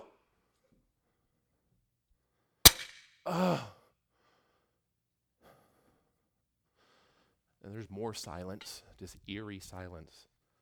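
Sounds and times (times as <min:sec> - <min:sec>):
sledgehammer coming down on a cross: 0:02.7 - 0:03.0
speech: 0:03.3 - 0:03.8, 0:07.8 - 0:10.3.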